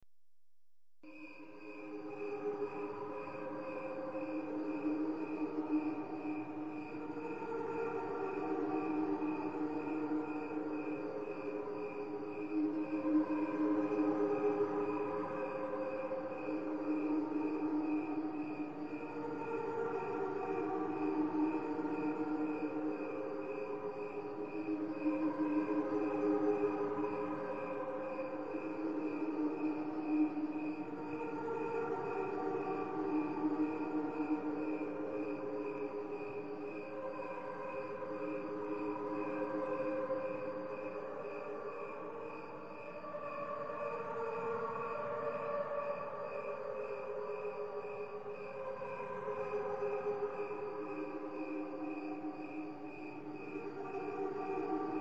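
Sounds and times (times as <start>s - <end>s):
cricket chorus: 1.1s - 54.9s.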